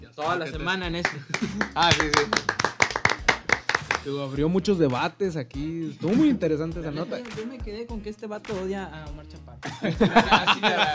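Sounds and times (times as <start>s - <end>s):
speech: 0.2s - 2.6s, 4.0s - 10.9s
hands clapping: 0.9s - 4.1s, 7.2s - 7.6s, 8.4s - 8.7s
laughter: 1.0s - 2.8s, 9.6s - 10.9s.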